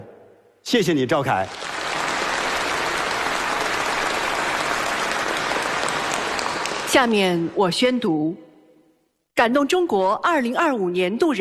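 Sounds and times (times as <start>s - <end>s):
speech: 0.7s - 1.7s, 6.9s - 8.4s, 9.4s - 11.3s
large crowd applause: 1.3s - 7.1s.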